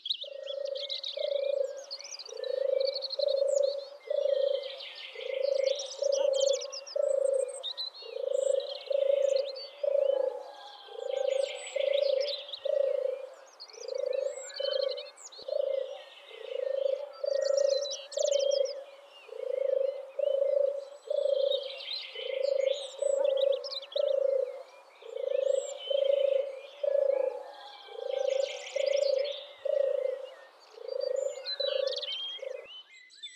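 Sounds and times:
European turtle dove: 0:00.2 - 0:32.7.

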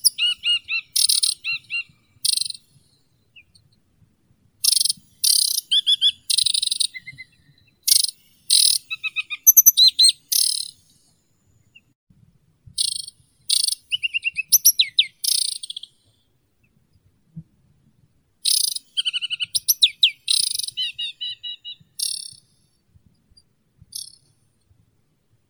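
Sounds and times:
aquatic warbler Acrocephalus paludicola calling: 0:00.0 - 0:02.6, 0:04.6 - 0:10.8, 0:12.8 - 0:15.9, 0:18.5 - 0:22.4.

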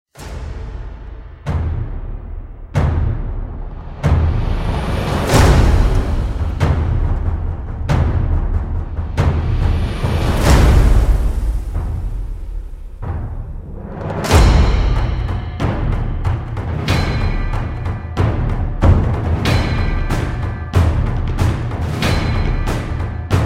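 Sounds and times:
drums: 0:00.1 - 0:23.4.

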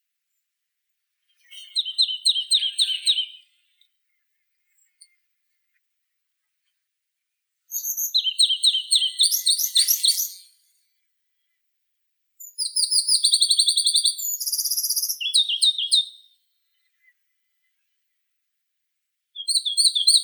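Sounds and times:
Pallas's leaf warbler Phylloscopus proregulus singing: 0:01.4 - 0:03.5, 0:07.7 - 0:10.6, 0:12.5 - 0:16.1.

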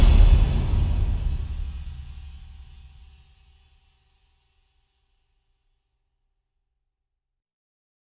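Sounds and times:
drums: 0:00.0 - 0:03.2.

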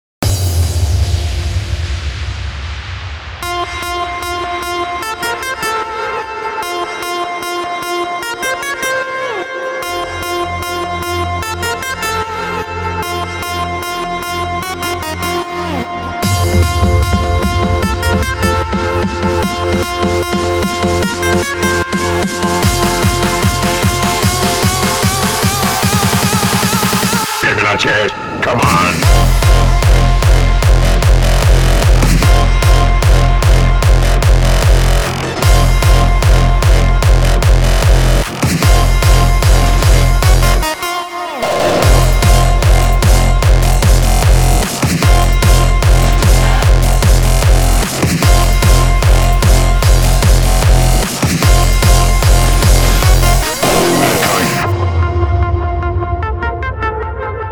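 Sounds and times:
hardstyle music: 0:00.2 - 0:57.5.

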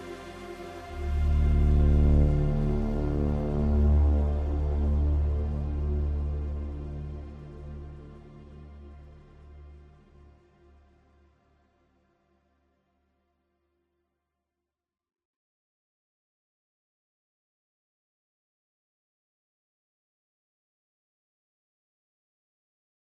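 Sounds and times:
ambient music: 0:00.0 - 0:11.9.

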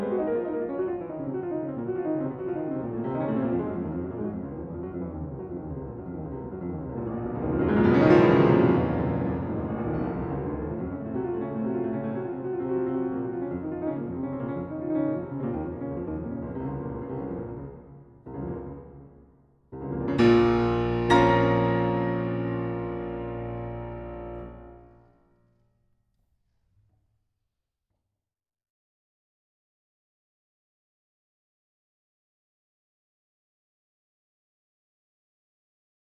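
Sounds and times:
piano sonata presto in B-flat minor: 0:00.0 - 0:25.1.

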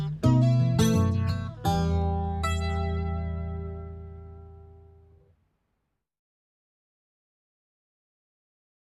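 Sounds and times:
instrumental music: 0:00.0 - 0:05.3.

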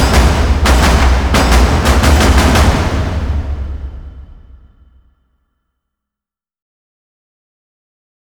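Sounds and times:
percussion: 0:00.0 - 0:05.0.

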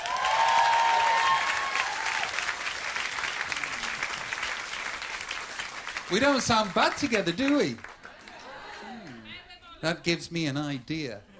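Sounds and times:
faint whistle or cheer: 0:00.0 - 0:02.2
crowd applauding: 0:00.0 - 0:09.3
speech: 0:06.1 - 0:07.9, 0:09.8 - 0:11.3.

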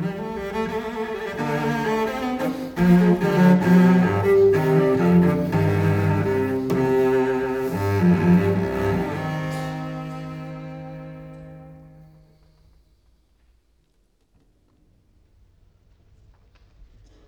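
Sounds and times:
solo cello courante in C minor: 0:00.0 - 0:12.6.

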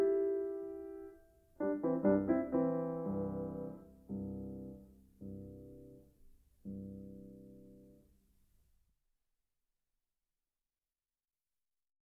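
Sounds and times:
easy piano pieces on a Hungarian folksong: 0:00.0 - 0:08.0.

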